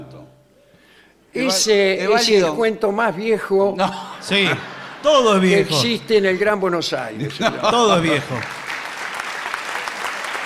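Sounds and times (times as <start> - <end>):
speech: 1.3 - 8.6
laughter: 3.8 - 8.7
audience applause: 4.5 - 10.4.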